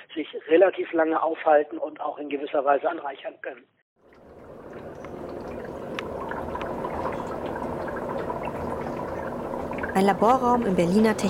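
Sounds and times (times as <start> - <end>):
speech: 0.2 - 3.8, 10.0 - 11.2
liquid bubbling in lab glass vessels: 4.0 - 11.2.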